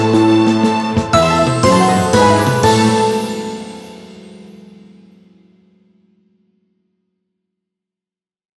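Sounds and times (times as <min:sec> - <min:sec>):
orchestra playing: 0:00.0 - 0:04.4
piano: 0:00.0 - 0:05.9.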